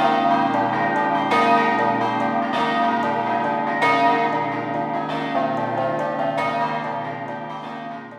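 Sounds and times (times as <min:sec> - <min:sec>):
church bells ringing in Codroipo: 0:00.0 - 0:08.1.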